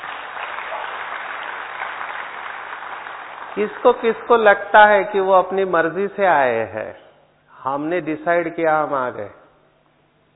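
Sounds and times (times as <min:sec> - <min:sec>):
crowd applause: 0:00.0 - 0:04.5
speech: 0:03.6 - 0:07.0, 0:07.6 - 0:09.4.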